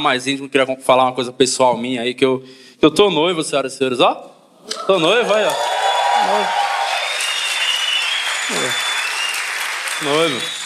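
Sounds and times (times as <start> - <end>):
speech: 0.0 - 6.6, 10.0 - 10.6
audience applauding: 5.1 - 10.6.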